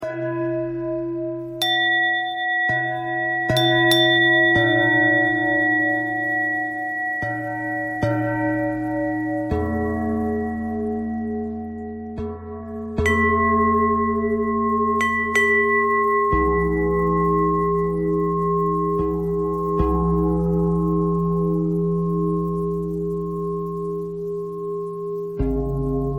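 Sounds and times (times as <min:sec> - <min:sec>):
bell: 0:00.0 - 0:26.1.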